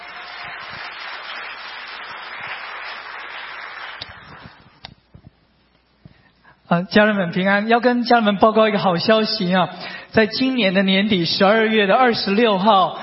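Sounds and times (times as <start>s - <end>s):
crowd applauding: 0.0s - 4.7s
speech: 6.7s - 13.0s.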